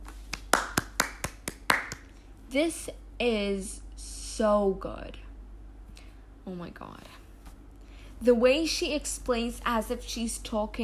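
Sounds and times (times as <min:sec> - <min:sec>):
hand claps: 0:00.0 - 0:02.2
speech: 0:02.5 - 0:03.8, 0:04.4 - 0:05.2, 0:06.4 - 0:07.2, 0:08.2 - 0:10.8.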